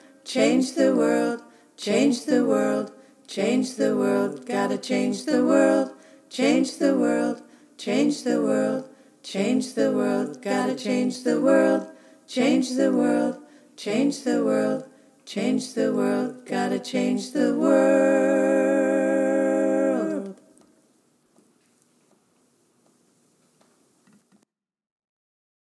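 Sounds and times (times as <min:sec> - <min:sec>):
choir singing all parts: 0:00.0 - 0:20.5.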